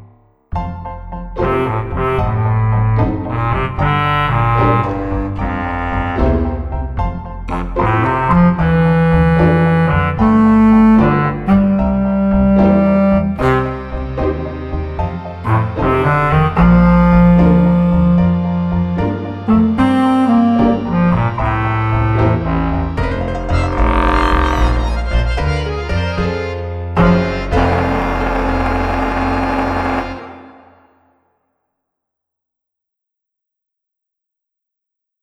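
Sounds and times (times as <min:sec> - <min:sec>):
solo clarinet: 0:01.4 - 0:31.0.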